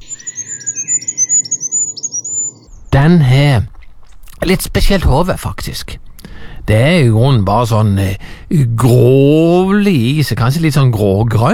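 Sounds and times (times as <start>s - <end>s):
goldcrest singing: 0.0s - 3.0s
speech: 3.0s - 3.7s, 4.4s - 6.0s, 6.7s - 11.5s.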